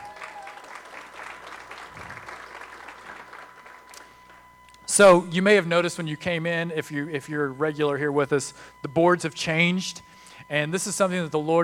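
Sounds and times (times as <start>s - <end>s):
audience applauding: 0.0s - 4.4s
speech: 5.0s - 11.6s.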